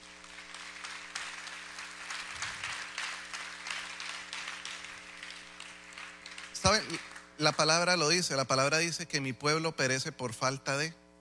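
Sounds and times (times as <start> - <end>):
audience applause: 0.0 - 7.8
speech: 6.6 - 11.0.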